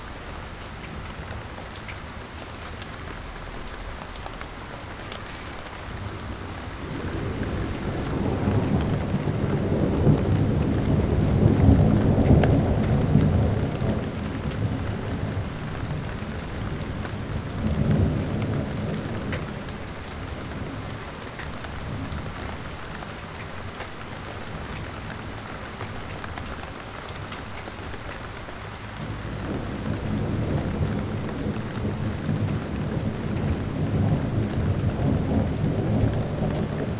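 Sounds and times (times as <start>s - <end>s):
rain: 0.0s - 36.9s
thunder: 6.2s - 21.0s, 29.0s - 36.9s.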